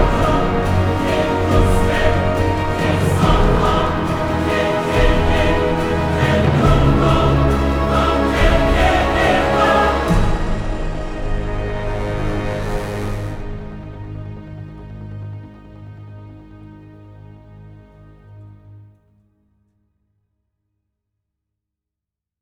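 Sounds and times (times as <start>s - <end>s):
gritty choir: 0.0s - 16.6s.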